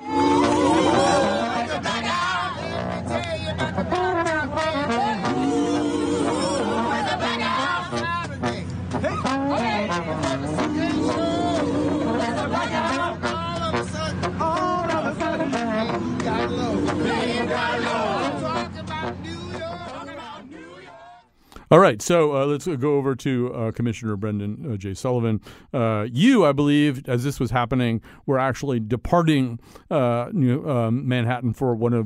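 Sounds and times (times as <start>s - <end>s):
crowd of people standing out on the street: 0.0s - 21.3s
improvised singing: 0.0s - 21.3s
speech: 21.9s - 32.0s.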